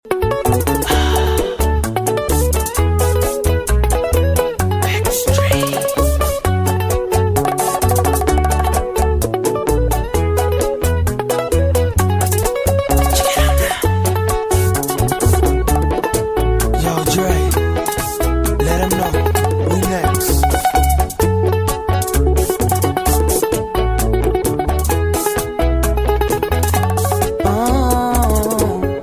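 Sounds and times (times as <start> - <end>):
bachata style music: 0.1 - 29.0.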